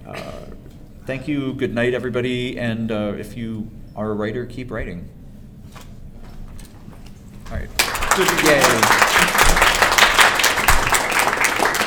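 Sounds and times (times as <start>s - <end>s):
speech: 1.1s - 5.2s, 7.5s - 9.3s
crowd applauding: 7.5s - 11.8s.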